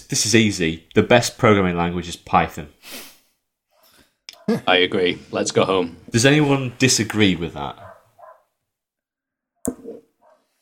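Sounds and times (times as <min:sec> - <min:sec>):
speech: 0:00.1 - 0:03.1, 0:04.5 - 0:07.9
West Highland terrier dog barking: 0:03.8 - 0:04.6, 0:07.8 - 0:08.5, 0:10.2 - 0:10.5.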